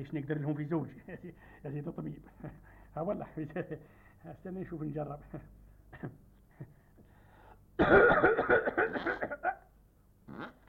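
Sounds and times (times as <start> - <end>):
speech: 0.0 - 6.8, 7.8 - 9.5, 10.3 - 10.6
person breathing heavily during a medical exam: 1.3 - 1.7, 2.6 - 3.0, 3.8 - 4.2, 6.5 - 7.7
person coughing during a medical exam: 5.2 - 6.7, 7.8 - 9.7.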